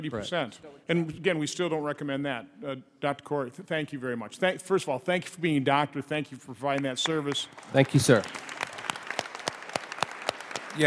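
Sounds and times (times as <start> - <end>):
speech: 0.0 - 8.5
audience applause: 6.8 - 10.8.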